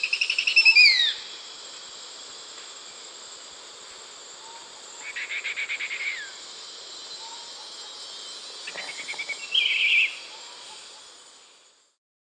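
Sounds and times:
spotted woodcreeper calling in South America: 0.0s - 1.4s, 4.4s - 11.1s.

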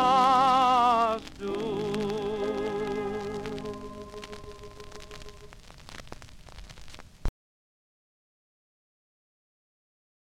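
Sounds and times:
vocals: 0.0s - 5.5s.

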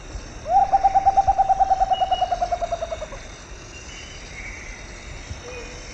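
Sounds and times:
Rufous Potoo calling: 0.5s - 3.2s.

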